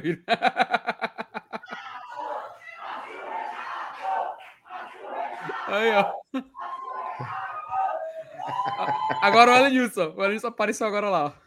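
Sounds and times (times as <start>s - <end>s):
speech: 0.0s - 0.9s, 5.7s - 6.5s, 9.1s - 11.4s
laughter: 0.0s - 9.7s
crowd chanting: 1.7s - 9.2s.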